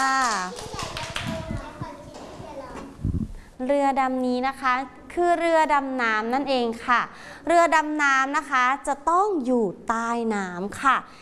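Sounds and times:
children clapping hands: 0.0 - 1.9
speech: 3.6 - 11.2.

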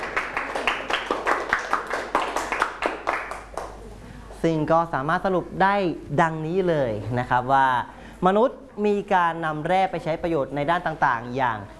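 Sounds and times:
classroom clapping: 0.0 - 3.8
speech: 4.4 - 11.7.

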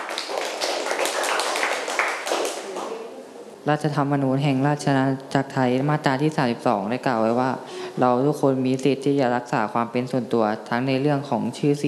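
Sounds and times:
classroom group applause: 0.0 - 3.1
speech: 3.6 - 11.8.

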